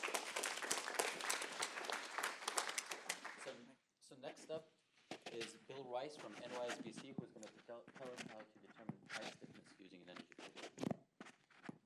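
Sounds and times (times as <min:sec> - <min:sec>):
audience applause: 0:00.0 - 0:03.6
speech: 0:04.1 - 0:10.9.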